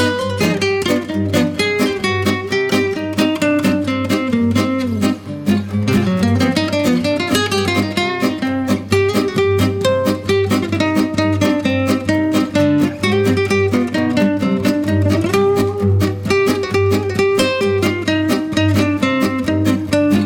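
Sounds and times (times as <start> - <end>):
Spanish guitar: 0.0 - 20.2.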